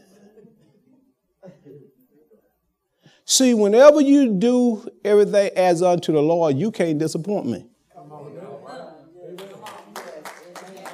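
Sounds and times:
speech: 0:03.3 - 0:07.7
hand claps: 0:09.4 - 0:10.9.

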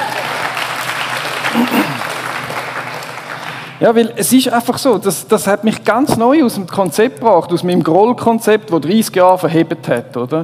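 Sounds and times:
voices and cheers: 0:00.0 - 0:00.7
audience applause: 0:00.0 - 0:03.8
speech: 0:03.8 - 0:10.4.

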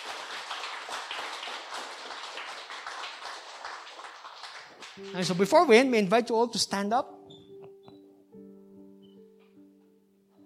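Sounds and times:
audience clapping: 0:00.0 - 0:06.1
speech: 0:05.0 - 0:07.2.

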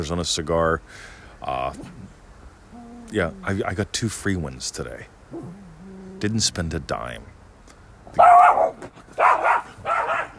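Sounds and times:
speech: 0:00.0 - 0:02.2, 0:03.1 - 0:05.6, 0:06.2 - 0:07.4
dogs barking: 0:08.1 - 0:10.3.

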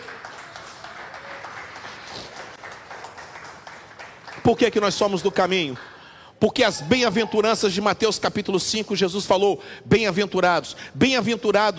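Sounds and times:
audience applause: 0:00.0 - 0:04.8
speech: 0:04.4 - 0:11.7.

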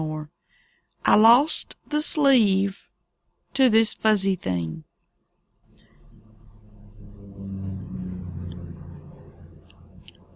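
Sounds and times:
speech: 0:01.0 - 0:02.8, 0:03.6 - 0:04.9
airplane flying overhead: 0:06.0 - 0:10.3.

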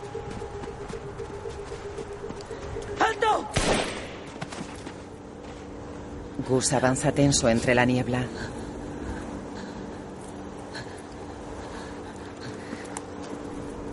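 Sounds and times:
steady low hum: 0:00.0 - 0:13.9
speech: 0:03.0 - 0:03.9, 0:06.5 - 0:08.6
gunshots: 0:03.5 - 0:04.5.

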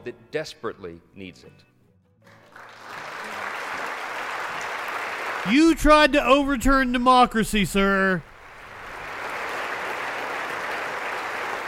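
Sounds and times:
speech: 0:00.0 - 0:01.7, 0:05.4 - 0:08.3
chamber applause from a large crowd: 0:02.3 - 0:11.6.

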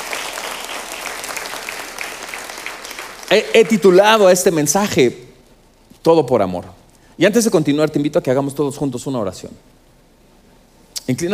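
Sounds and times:
congregation applause in a church: 0:00.0 - 0:04.4
speech: 0:03.3 - 0:05.2, 0:06.0 - 0:09.8, 0:11.1 - 0:11.3.

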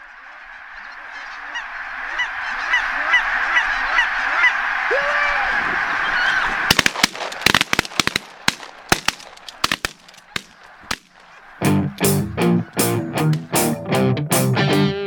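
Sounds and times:
dense chorus of geese honking and calling: 0:00.0 - 0:15.0
rapid series of sharp loud bangs: 0:06.7 - 0:12.2.

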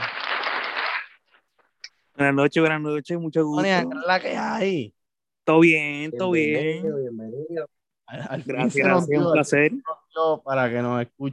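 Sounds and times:
applause: 0:00.0 - 0:01.4
speech: 0:02.2 - 0:11.3.

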